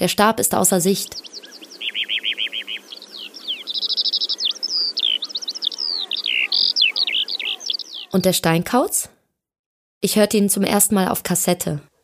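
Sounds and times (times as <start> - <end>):
speech: 0.0 - 1.7, 8.1 - 9.2, 10.0 - 11.9
lark singing: 0.7 - 8.6.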